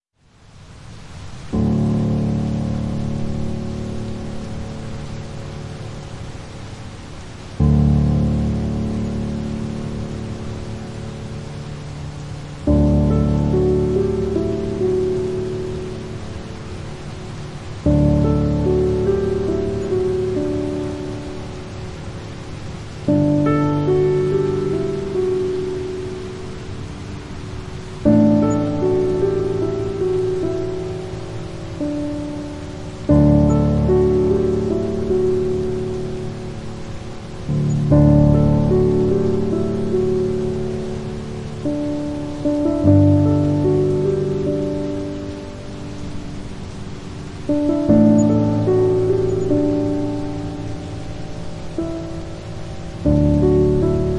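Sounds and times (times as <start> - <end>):
rain: 0.0 - 54.1
piano: 0.5 - 54.1.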